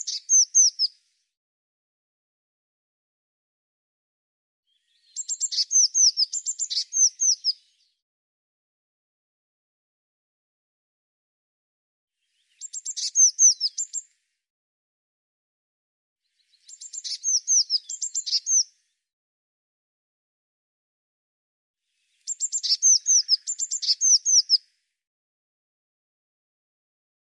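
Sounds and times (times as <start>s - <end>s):
bird song of sharp chips and falling whistles: 0.0s - 0.9s, 5.2s - 7.6s, 12.6s - 14.0s, 16.8s - 18.6s, 22.3s - 24.6s.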